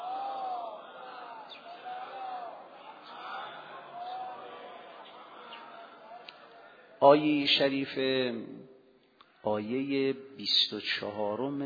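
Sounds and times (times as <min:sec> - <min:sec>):
congregation reciting salawat in unison: 0:00.0 - 0:07.7
speech: 0:07.0 - 0:08.7, 0:09.4 - 0:11.6.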